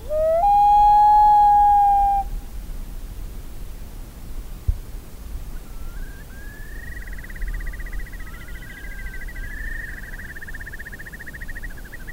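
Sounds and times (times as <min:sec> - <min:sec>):
common loon wail: 0:00.0 - 0:02.3.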